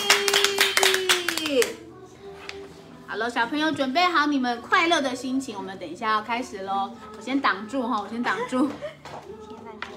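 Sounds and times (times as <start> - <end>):
audience applause: 0.0 - 1.6
speech: 3.2 - 9.4.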